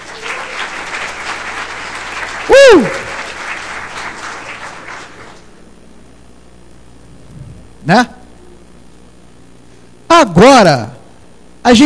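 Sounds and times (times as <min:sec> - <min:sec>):
people clapping: 0:00.0 - 0:05.6
speech: 0:02.7 - 0:03.0, 0:07.9 - 0:08.1, 0:10.2 - 0:10.9, 0:11.6 - 0:11.8.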